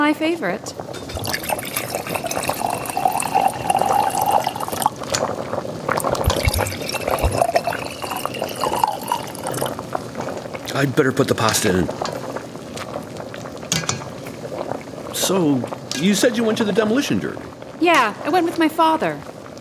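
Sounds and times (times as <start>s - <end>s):
speech: 0.1s - 1.4s, 10.8s - 12.2s, 15.3s - 19.6s
wine being poured into a glass: 1.1s - 5.2s, 6.0s - 10.8s.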